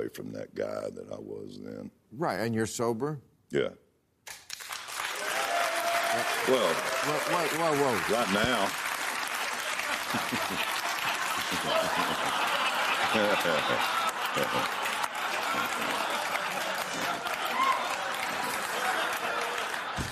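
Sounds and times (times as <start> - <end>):
speech: 0.0 - 4.4, 6.2 - 8.9, 10.1 - 10.7, 11.5 - 14.8
audience applause: 4.5 - 20.1
people chuckling: 9.6 - 20.1.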